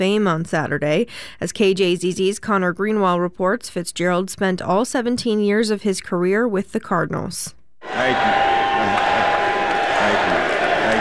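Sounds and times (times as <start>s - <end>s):
speech: 0.0s - 8.5s
crowd chanting at induction ceremony: 7.8s - 11.0s.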